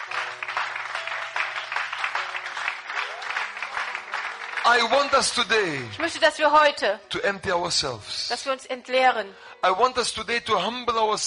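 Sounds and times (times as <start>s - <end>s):
audience clapping: 0.0s - 6.4s
speech: 4.7s - 11.2s.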